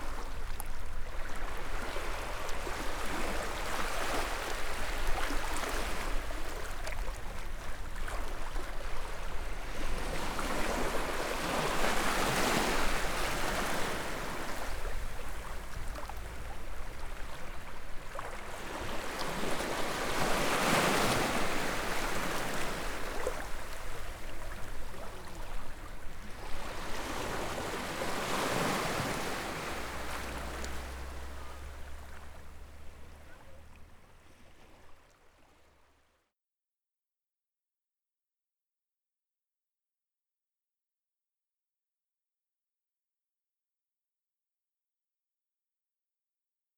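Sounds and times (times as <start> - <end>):
ocean waves at Carnac: 0.0 - 35.6.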